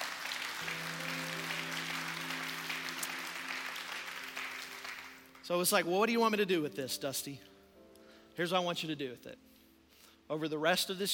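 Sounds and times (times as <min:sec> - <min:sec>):
audience clapping hands: 0:00.0 - 0:05.8
sustained low musical chord like an organ: 0:00.6 - 0:05.9
speech: 0:05.5 - 0:07.5, 0:08.4 - 0:09.5, 0:10.3 - 0:11.1.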